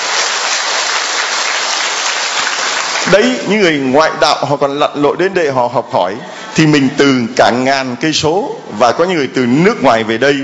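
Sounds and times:
audience applause welcoming newcomers at a religious gathering: 0:00.0 - 0:03.8
speech: 0:03.1 - 0:10.4.

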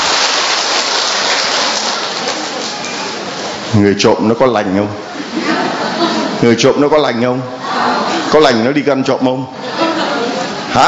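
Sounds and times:
audience applause: 0:00.0 - 0:02.8
speech: 0:03.8 - 0:05.0, 0:06.4 - 0:07.6, 0:08.3 - 0:09.6
laughter: 0:05.1 - 0:10.8.

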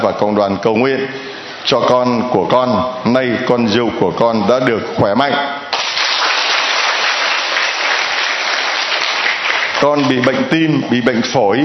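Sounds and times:
speech: 0:00.0 - 0:05.8, 0:09.8 - 0:11.6
loud audience applause: 0:05.7 - 0:10.3.

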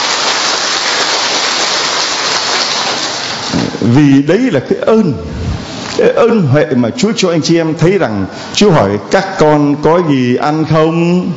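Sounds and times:
big round of applause: 0:00.0 - 0:03.5
speech: 0:03.9 - 0:05.4, 0:06.0 - 0:11.3.

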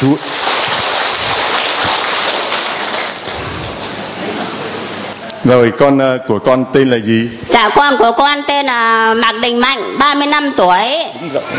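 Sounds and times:
speech: 0:00.0 - 0:00.4, 0:05.4 - 0:11.5
audience applause: 0:00.0 - 0:04.0.

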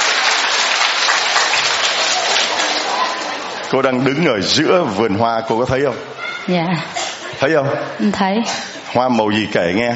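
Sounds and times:
audience applause at a religious gathering: 0:00.0 - 0:04.3
speech: 0:03.7 - 0:09.9.

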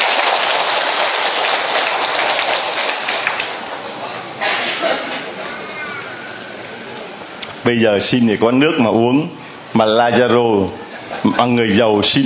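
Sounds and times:
audience applause: 0:00.0 - 0:04.1
speech: 0:07.7 - 0:12.2.

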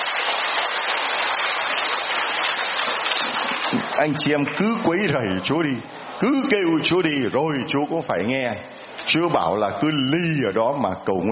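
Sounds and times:
crowd applause: 0:00.0 - 0:07.0
speech: 0:04.0 - 0:11.3.

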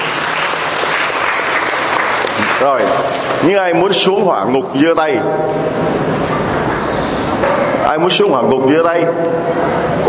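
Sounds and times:
congregation applauding inside a church: 0:00.0 - 0:03.9
speech: 0:02.6 - 0:06.5, 0:07.5 - 0:10.0.

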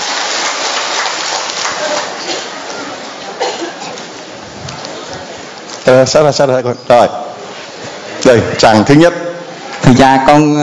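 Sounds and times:
large crowd applause: 0:00.0 - 0:04.1
speech: 0:05.9 - 0:07.2, 0:08.3 - 0:09.2, 0:09.9 - 0:10.6.

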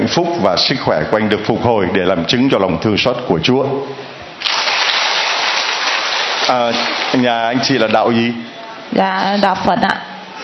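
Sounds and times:
speech: 0:00.1 - 0:04.1, 0:06.5 - 0:10.1
crowd applause: 0:04.4 - 0:07.8.

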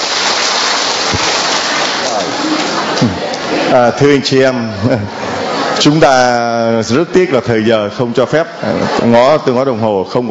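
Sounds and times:
round of applause: 0:00.0 - 0:03.5
laughter: 0:02.0 - 0:10.3
speech: 0:03.7 - 0:05.2, 0:05.8 - 0:10.3.

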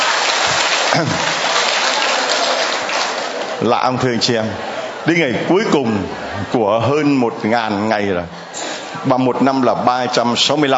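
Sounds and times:
crowd applauding: 0:00.0 - 0:05.8
speech: 0:00.9 - 0:01.3, 0:03.6 - 0:08.4, 0:09.0 - 0:10.7.

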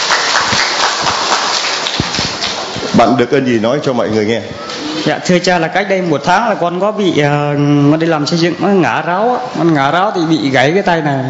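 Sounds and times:
applause: 0:00.0 - 0:02.7
speech: 0:03.0 - 0:11.2.

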